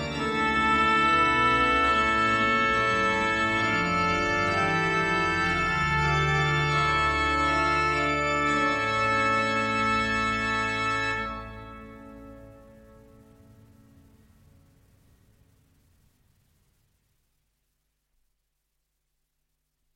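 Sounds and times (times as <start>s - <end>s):
chorale prelude for organ: 0.0s - 14.7s.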